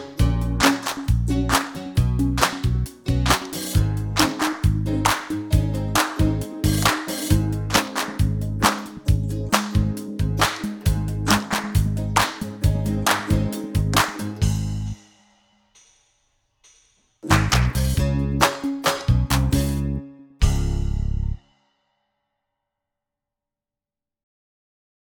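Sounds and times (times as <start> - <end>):
instrumental music: 0.0 - 15.5, 17.2 - 21.5.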